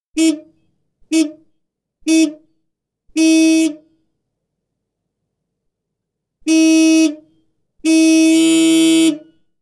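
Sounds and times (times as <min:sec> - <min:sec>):
car horn blasts from car exterior: 0:03.2 - 0:03.8, 0:06.5 - 0:07.2, 0:07.8 - 0:09.2.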